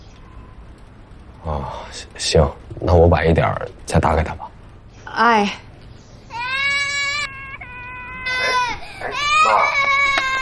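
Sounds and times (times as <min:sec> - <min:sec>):
speech: 0:01.7 - 0:04.5, 0:05.2 - 0:05.7
baby crying: 0:06.3 - 0:10.4.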